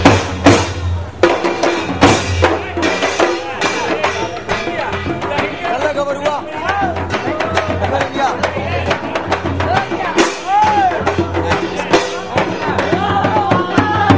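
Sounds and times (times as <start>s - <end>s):
street drums in India: 0.0s - 14.1s.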